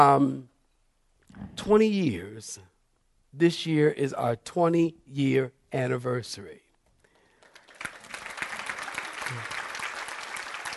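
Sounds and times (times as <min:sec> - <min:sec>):
speech: 0:00.0 - 0:00.5, 0:01.4 - 0:02.7, 0:03.3 - 0:06.6, 0:09.3 - 0:09.5
audience applause: 0:07.4 - 0:10.7.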